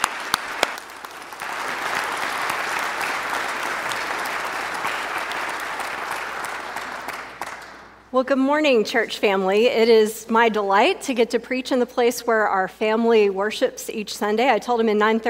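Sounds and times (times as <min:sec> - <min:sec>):
church congregation applauding to welcome a preacher: 0:00.0 - 0:08.0
speech: 0:08.1 - 0:15.2.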